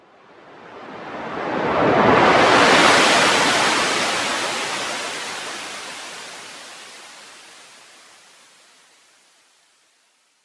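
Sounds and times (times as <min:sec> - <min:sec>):
wave: 0:00.4 - 0:08.3.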